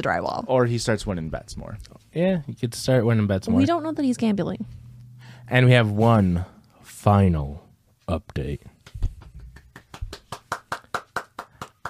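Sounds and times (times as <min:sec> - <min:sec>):
speech: 0:00.0 - 0:04.8, 0:05.5 - 0:08.7
sharp hand claps: 0:08.8 - 0:11.8.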